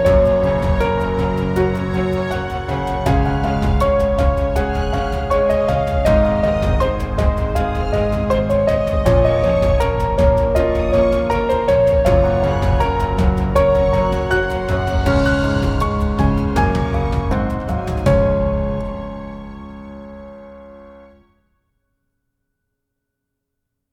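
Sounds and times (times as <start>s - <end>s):
beautiful piano music: 0.0s - 21.3s.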